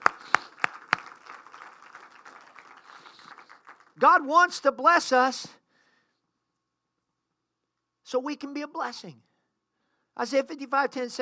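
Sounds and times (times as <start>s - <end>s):
hand claps of praise: 0.0s - 4.0s
speech: 4.0s - 5.6s, 8.1s - 9.3s, 10.2s - 11.2s.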